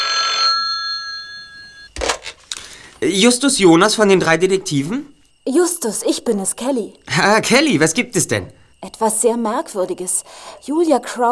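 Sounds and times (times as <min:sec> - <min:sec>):
telephone ringing: 0:00.0 - 0:04.8
speech: 0:03.0 - 0:11.2.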